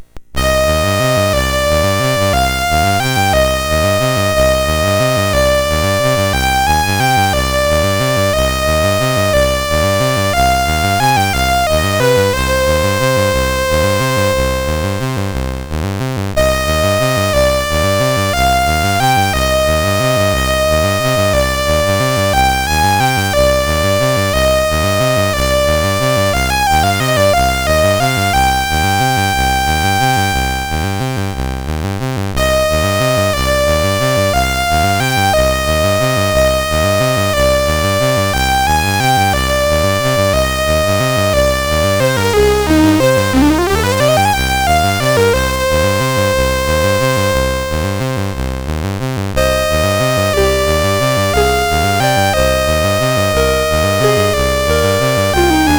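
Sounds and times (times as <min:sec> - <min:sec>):
waltz on MOS6581R4 sound chip: 0:00.4 - 0:55.7.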